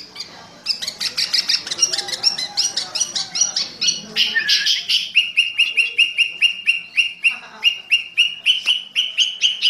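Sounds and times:
sooty-headed bulbul chattering song in fierce thunder voice style: 0.0s - 9.6s.

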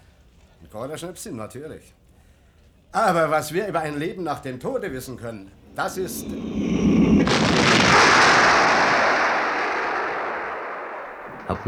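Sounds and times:
speech: 0.7s - 2.0s, 2.9s - 7.8s, 11.5s - 11.6s
cannonball whistling: 4.7s - 11.6s
loud booming cannonball explosion: 5.0s - 11.6s.

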